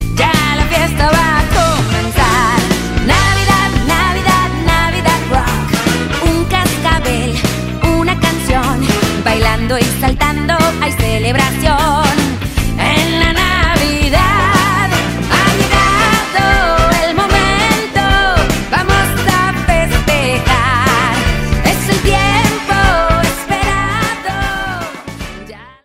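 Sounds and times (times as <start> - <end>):
Christmas rock music: 0.0 - 25.8.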